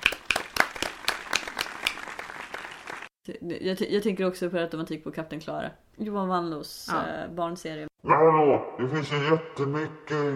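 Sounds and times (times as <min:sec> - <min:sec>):
applause from a small group: 0:00.0 - 0:03.1
speech: 0:03.3 - 0:10.3.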